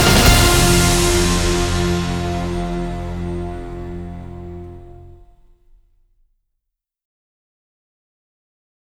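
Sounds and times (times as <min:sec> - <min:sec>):
orchestra playing: 0:00.0 - 0:05.4.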